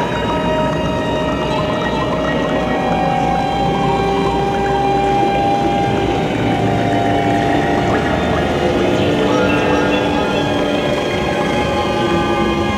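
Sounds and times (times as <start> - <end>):
ghostly music: 0.0 - 12.7.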